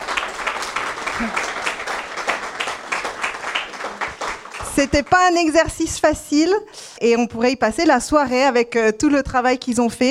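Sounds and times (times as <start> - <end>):
audience applause: 0.0 - 5.4
speech: 1.2 - 1.4, 4.8 - 10.0.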